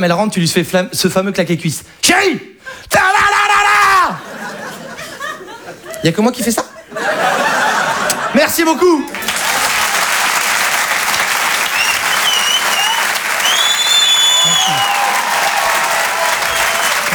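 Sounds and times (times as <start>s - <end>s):
speech: 0.0s - 3.3s, 6.0s - 7.4s, 8.3s - 9.3s
laughter: 3.8s - 13.5s, 14.1s - 17.1s
audience applause: 9.1s - 17.1s.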